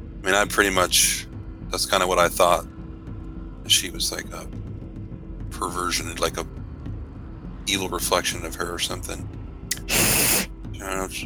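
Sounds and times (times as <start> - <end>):
speech: 0.2 - 2.7, 3.7 - 4.6, 5.5 - 6.6, 7.7 - 10.0, 10.8 - 11.2
person hissing through their teeth: 9.7 - 10.5.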